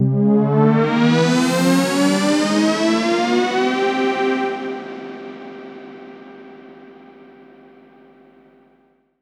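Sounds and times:
Virus synth tone drop: 0:00.0 - 0:04.9.

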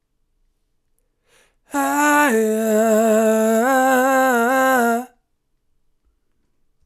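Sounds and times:
soul vocal melodies: 0:01.7 - 0:05.2.

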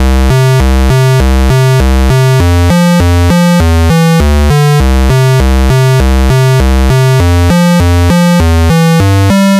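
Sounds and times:
NES chiptune bass: 0:00.0 - 0:09.5.

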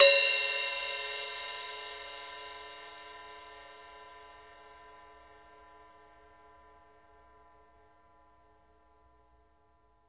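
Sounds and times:
stick on hi-hats: 0:00.0 - 0:02.9.

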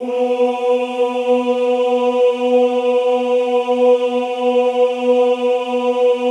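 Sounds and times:
classical choir singing ooh: 0:00.0 - 0:06.2.

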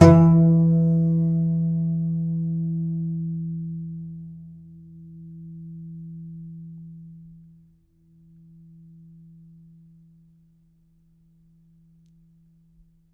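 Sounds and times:
contrabass balalaika plucked strings: 0:00.0 - 0:07.1.

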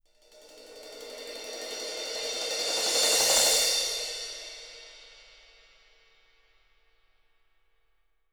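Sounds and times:
cymbals: 0:00.4 - 0:06.2.

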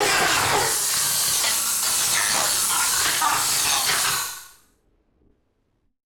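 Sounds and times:
malfunctioning synth: 0:00.0 - 0:04.6.

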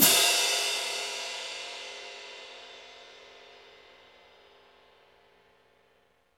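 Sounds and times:
orchestral cymbal crash: 0:00.0 - 0:04.4.

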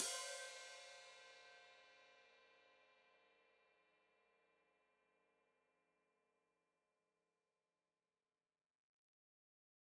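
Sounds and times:
open hi-hat played with foot: 0:00.0 - 0:01.2.

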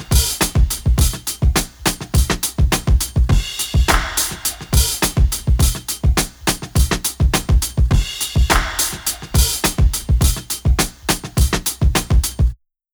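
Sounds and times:
drum breaks: 0:00.0 - 0:12.6
splash clap: 0:03.9 - 0:05.4, 0:08.4 - 0:09.9.

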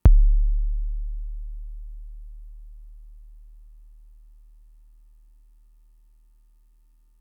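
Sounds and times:
Fricke MFB-522 kick drum: 0:00.0 - 0:04.2.

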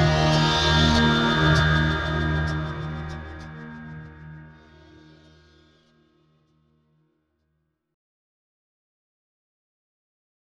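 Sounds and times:
reversed harmonic overtone sequence: 0:00.0 - 0:05.6.

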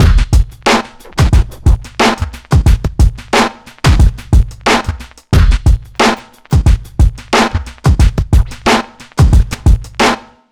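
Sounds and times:
drum kit: 0:00.0 - 0:10.4.

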